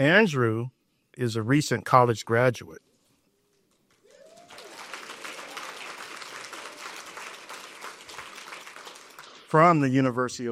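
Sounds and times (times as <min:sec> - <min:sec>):
speech: 0:00.0 - 0:02.9, 0:09.5 - 0:10.4
audience clapping: 0:03.5 - 0:10.1.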